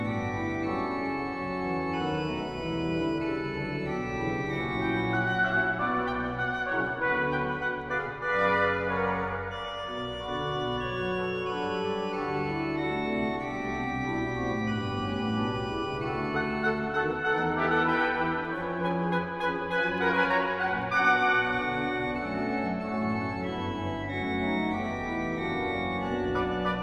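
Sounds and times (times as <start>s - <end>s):
instrumental psalm setting: 0.0s - 26.8s.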